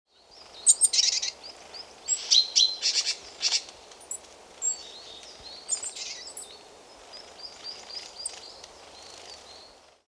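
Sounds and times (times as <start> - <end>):
great tit calls: 0.2 - 9.8.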